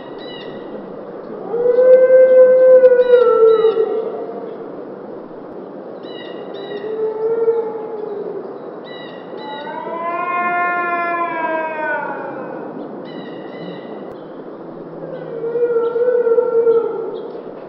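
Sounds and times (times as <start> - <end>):
dog howling and moaning: 1.3 - 4.6, 9.4 - 12.8, 15.0 - 17.3.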